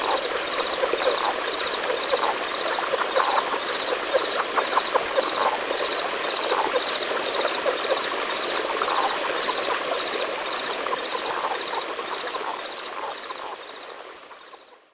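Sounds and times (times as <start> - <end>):
Relict leopard frog Rana onca calling in clicking pulses: 0.0 - 14.9.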